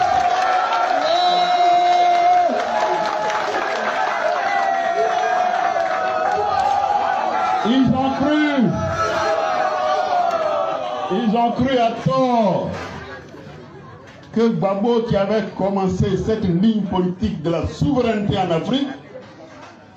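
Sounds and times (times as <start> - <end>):
large crowd cheering and clapping: 0.0 - 11.2
speech: 7.7 - 9.2, 11.1 - 13.0, 14.4 - 19.0.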